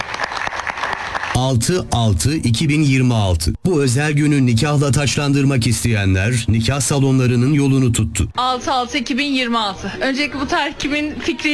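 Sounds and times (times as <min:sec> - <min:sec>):
rhythmic applause in a wedding hall: 0:00.0 - 0:01.8
speech: 0:01.4 - 0:11.5.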